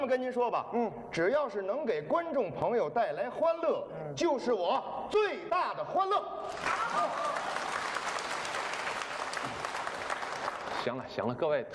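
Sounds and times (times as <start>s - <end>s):
speech: 0.0s - 7.3s, 10.8s - 11.7s
audience applause: 6.5s - 10.9s.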